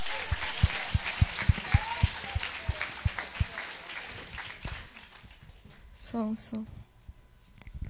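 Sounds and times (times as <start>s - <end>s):
audience applause: 0.0s - 5.6s
speech: 6.2s - 6.8s.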